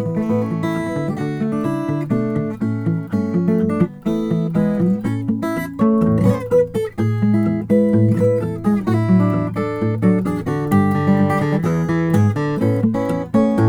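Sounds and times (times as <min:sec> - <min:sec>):
Rainsong graphite WS1000N2 Black Ice guitars playing: 0:00.0 - 0:13.6.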